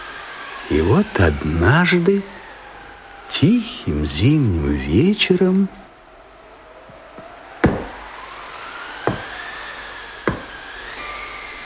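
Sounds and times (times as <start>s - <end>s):
speech: 0.7s - 2.4s, 3.3s - 5.8s
knocking on a cottage door: 7.6s - 8.0s, 9.1s - 9.3s, 10.3s - 10.6s.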